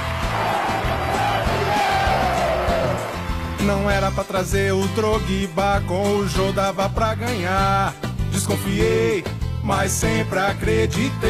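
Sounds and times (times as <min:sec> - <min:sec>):
large stadium crowd chanting: 0:00.0 - 0:03.4
speech: 0:03.6 - 0:11.2.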